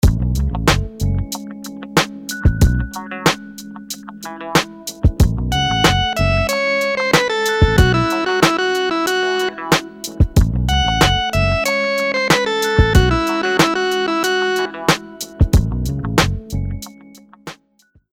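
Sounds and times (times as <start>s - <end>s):
dotted eighth rhythms: 0.0s - 17.4s.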